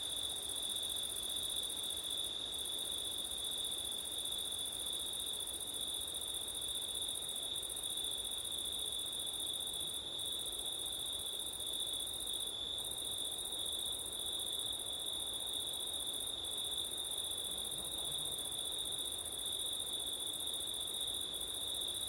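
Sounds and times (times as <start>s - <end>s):
cricket chorus: 0.0s - 22.0s.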